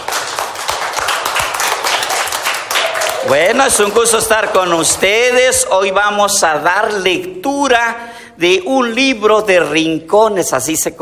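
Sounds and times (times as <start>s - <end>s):
children applauding: 0.0s - 5.4s
speech: 3.3s - 11.0s.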